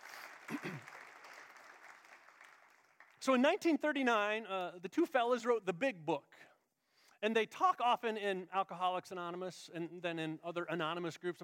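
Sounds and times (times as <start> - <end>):
person clapping: 0.0 - 3.2
speech: 3.2 - 6.5, 7.2 - 11.4.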